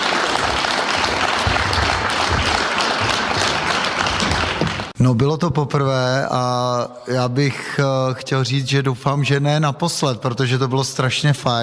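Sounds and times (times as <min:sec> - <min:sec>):
crowd applauding: 0:00.0 - 0:05.0
speech: 0:05.0 - 0:11.6.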